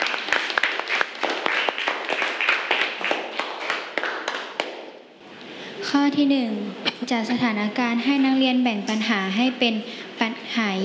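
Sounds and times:
classroom group clapping: 0:00.0 - 0:05.1
speech: 0:05.9 - 0:10.8.

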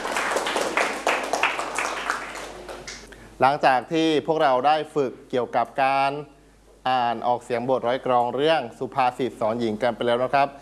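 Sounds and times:
clapping: 0:00.0 - 0:03.1
speech: 0:03.4 - 0:10.5.

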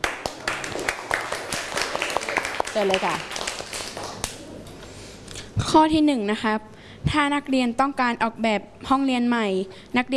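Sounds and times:
classroom of students clapping to encourage classmates: 0:00.0 - 0:04.4
speech: 0:02.8 - 0:03.3, 0:05.6 - 0:10.1.

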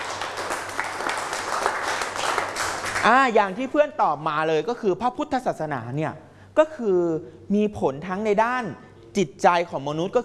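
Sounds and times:
classroom applause: 0:00.0 - 0:03.5
speech: 0:03.0 - 0:10.2.

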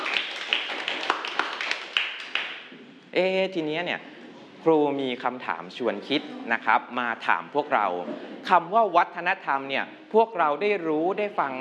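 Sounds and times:
classroom group clapping: 0:00.0 - 0:02.8
speech: 0:03.1 - 0:11.5.

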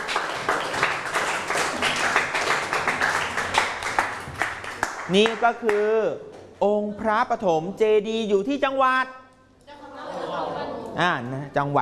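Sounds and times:
group applause: 0:00.0 - 0:05.8
speech: 0:05.1 - 0:09.2, 0:11.0 - 0:11.8
laughter: 0:09.7 - 0:11.0.

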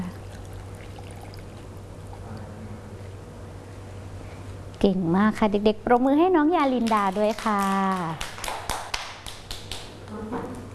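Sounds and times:
water poured out of a glass: 0:00.2 - 0:02.2
speech: 0:04.8 - 0:08.3.

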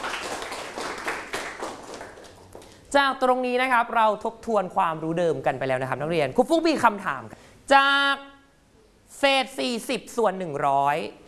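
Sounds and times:
pupils clapping for a classmate in a primary school maths lesson: 0:00.0 - 0:02.8
speech: 0:02.9 - 0:08.3, 0:09.1 - 0:11.2.

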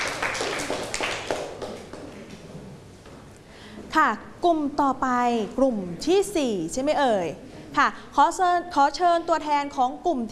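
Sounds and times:
classroom applause: 0:00.0 - 0:02.4
speech: 0:04.0 - 0:10.3.

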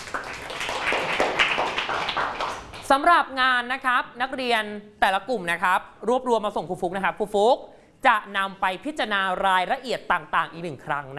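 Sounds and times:
students in a classroom applauding: 0:00.0 - 0:02.9
speech: 0:02.9 - 0:11.1.

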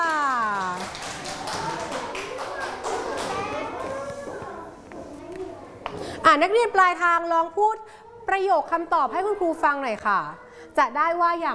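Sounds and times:
classroom children clapping hands: 0:00.0 - 0:04.1
speech: 0:06.3 - 0:11.5.

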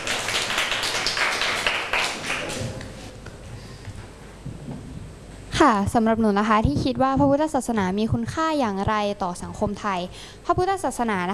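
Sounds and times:
classroom students clapping: 0:00.0 - 0:03.0
speech: 0:05.6 - 0:11.3.

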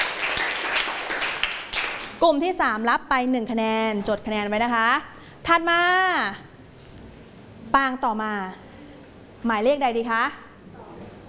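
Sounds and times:
students clapping: 0:00.0 - 0:02.2
speech: 0:02.2 - 0:06.5, 0:07.7 - 0:08.6, 0:09.4 - 0:10.4.

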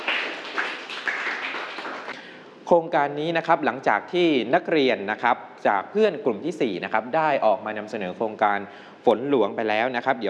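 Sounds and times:
students in a classroom clapping for a classmate after a group presentation: 0:00.0 - 0:02.2
speech: 0:02.7 - 0:10.2.

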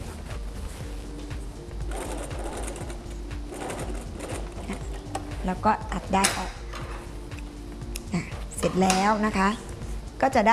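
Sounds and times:
sewing machine backstitching to the corner of a seam: 0:01.9 - 0:05.3
speech: 0:05.5 - 0:06.6, 0:08.6 - 0:10.5.

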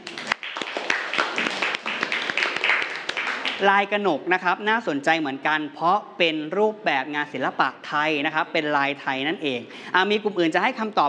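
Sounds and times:
applause: 0:00.0 - 0:03.8
speech: 0:03.6 - 0:11.0.

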